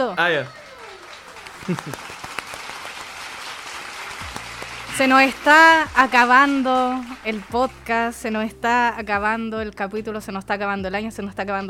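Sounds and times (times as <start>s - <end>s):
speech: 0.0s - 0.6s, 1.6s - 2.2s, 5.0s - 11.6s
applause: 0.0s - 8.2s
laughter: 0.2s - 2.5s.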